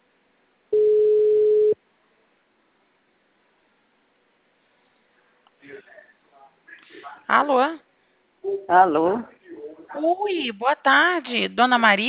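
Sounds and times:
telephone ringing tone: 0.8 - 1.8
speech: 7.3 - 7.9, 8.5 - 12.0.

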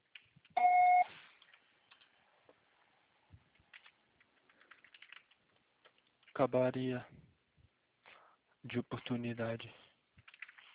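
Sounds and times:
voicemail recording beep tone: 0.6 - 1.1
speech: 6.4 - 7.2, 8.6 - 9.8.

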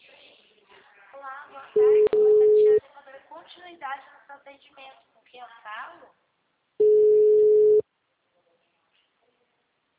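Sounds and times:
telephone line tone on a dead line: 1.8 - 2.8, 6.8 - 7.8
speech: 3.9 - 6.2.

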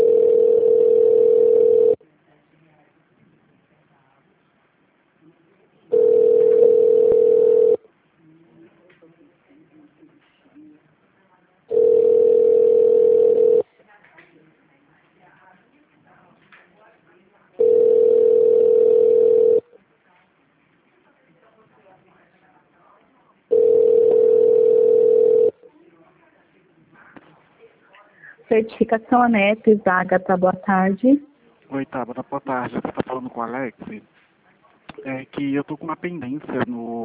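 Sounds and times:
telephone ringback tone while a call is connecting: 0.0 - 2.0, 5.9 - 7.8, 11.7 - 13.6, 17.6 - 19.6, 23.5 - 25.6
speech: 28.6 - 34.2, 35.0 - 36.8.

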